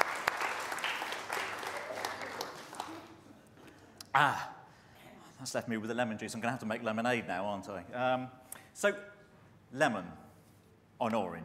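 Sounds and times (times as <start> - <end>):
audience applause: 0.0 - 3.2
speech: 4.2 - 4.5, 5.4 - 9.1, 9.7 - 10.2, 11.0 - 11.4.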